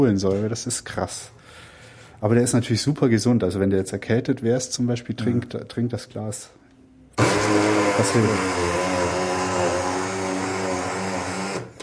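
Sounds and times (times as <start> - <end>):
speech: 0.0 - 6.6, 7.5 - 8.8
blender pureeing rhubarb: 7.2 - 11.8.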